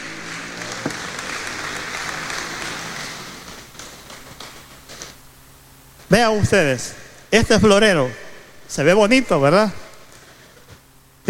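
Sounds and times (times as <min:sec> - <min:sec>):
audience applause: 0:00.0 - 0:05.2
speech: 0:06.1 - 0:09.8.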